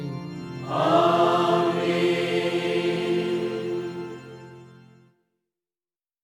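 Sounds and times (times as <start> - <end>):
chanting: 0.7 - 4.3.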